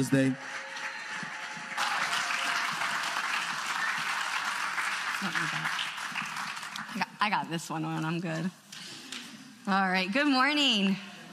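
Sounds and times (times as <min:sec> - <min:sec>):
speech: 0:00.0 - 0:00.5, 0:05.2 - 0:05.8, 0:07.2 - 0:08.6, 0:09.6 - 0:11.1
congregation applauding at a Mother's Day morning church service: 0:00.0 - 0:07.2.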